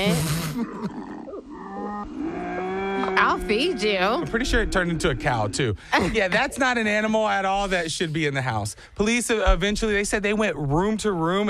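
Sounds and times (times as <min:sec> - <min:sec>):
speech: 0:00.0 - 0:01.2, 0:01.8 - 0:11.4
bobcat growling: 0:00.0 - 0:06.6.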